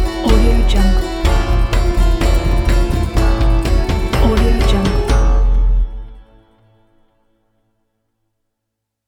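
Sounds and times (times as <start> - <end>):
steampunk adventure music: 0.0 - 7.2.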